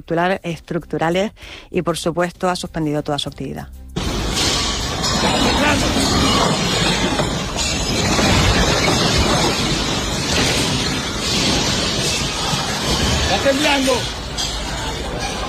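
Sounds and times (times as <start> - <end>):
speech: 0.0 - 3.8, 5.6 - 8.2, 13.3 - 14.2
airport wall collapsing during earthquake: 4.0 - 15.4.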